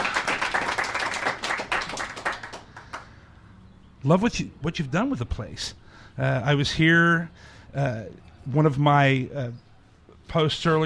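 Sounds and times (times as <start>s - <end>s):
small group clapping: 0.0s - 3.1s
speech: 4.0s - 9.7s, 10.3s - 10.8s.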